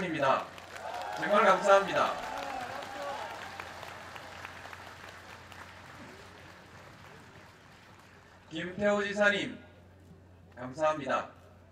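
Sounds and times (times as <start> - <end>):
crowd applauding: 0.0 - 8.5
speech: 0.2 - 0.6, 1.2 - 2.4, 8.5 - 9.6, 10.6 - 11.4.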